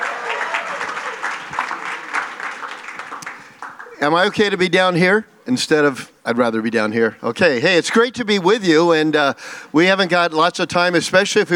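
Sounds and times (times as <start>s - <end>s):
audience applauding as a speaker comes up at an evening event: 0.0s - 4.4s
speech: 4.0s - 11.5s.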